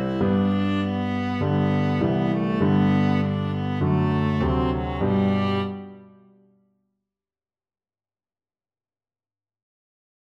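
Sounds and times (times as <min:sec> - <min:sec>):
viola melody: 0:00.0 - 0:06.2.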